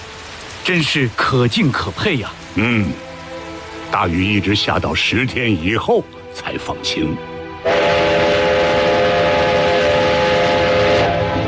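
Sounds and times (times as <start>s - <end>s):
speech: 0.7s - 3.1s, 3.9s - 7.8s
train rumbling on tracks: 7.6s - 11.4s.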